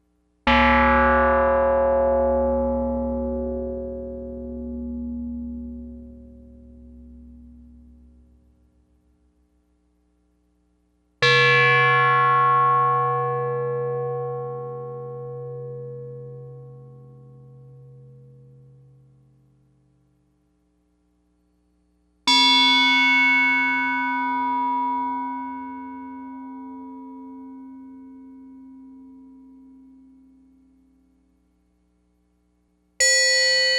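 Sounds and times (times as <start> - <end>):
bell: 0.5 - 8.6, 11.2 - 19.0, 22.3 - 31.1, 33.0 - 33.7.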